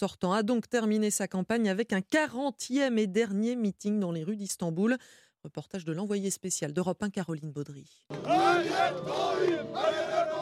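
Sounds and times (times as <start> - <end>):
speech: 0.0 - 10.1
crowd chanting and shouting at a political rally in Istanbul: 8.1 - 10.4.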